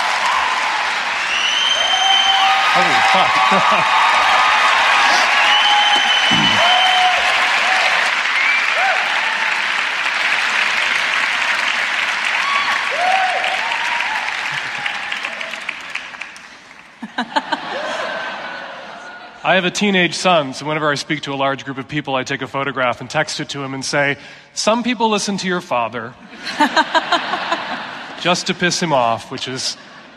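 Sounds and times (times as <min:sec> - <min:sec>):
audience applause welcoming a speaker to a festival session: 0:00.0 - 0:19.1
laughter: 0:02.7 - 0:04.2, 0:06.0 - 0:06.8, 0:14.4 - 0:15.7, 0:17.0 - 0:19.4, 0:26.3 - 0:30.1
speech: 0:02.8 - 0:04.0, 0:19.5 - 0:27.1, 0:28.2 - 0:29.9.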